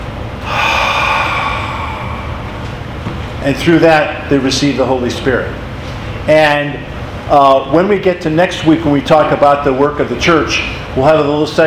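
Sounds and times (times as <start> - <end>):
voice imitating breathing out on someone: 0.4 - 3.0
speech: 3.4 - 5.6, 6.3 - 11.6.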